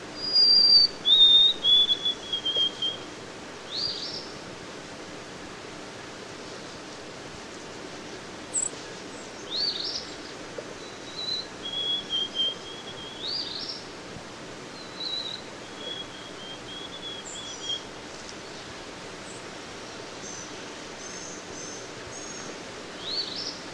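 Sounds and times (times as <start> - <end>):
White-throated sparrow song of pure whistles: 0.2 - 3.0, 3.7 - 4.3, 9.4 - 10.2, 10.8 - 13.8, 14.7 - 18.0, 20.2 - 23.6.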